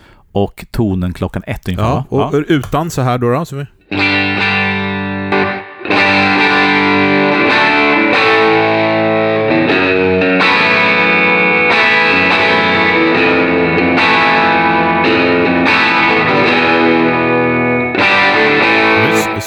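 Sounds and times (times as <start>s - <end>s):
speech: 0.4s - 4.3s
electric guitar through germanium overdrive pedal strumming distorted chords: 3.9s - 19.4s.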